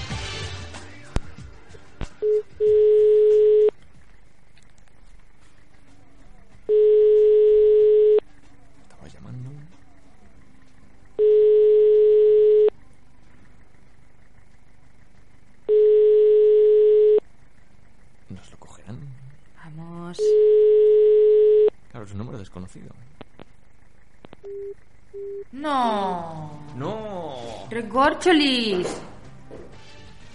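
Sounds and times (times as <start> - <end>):
telephone tone after a call ends or is cut off: 2.2 - 3.7, 6.7 - 8.2, 11.2 - 12.7, 15.7 - 17.2, 20.2 - 21.7, 24.4 - 25.5
speech: 27.9 - 29.1.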